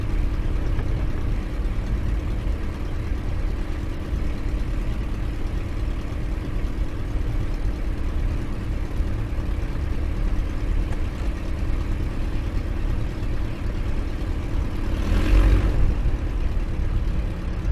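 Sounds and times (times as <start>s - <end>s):
RAAF de Havilland DH82A Tiger Moth taxiing, heard from the interior: 0.0s - 17.7s.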